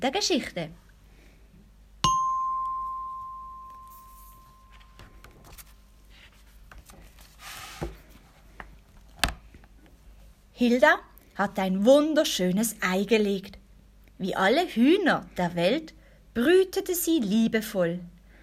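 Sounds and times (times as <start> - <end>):
speech: 0.0 - 0.8, 10.6 - 13.6, 14.2 - 18.1
chime signalling to turn the page: 2.0 - 5.2.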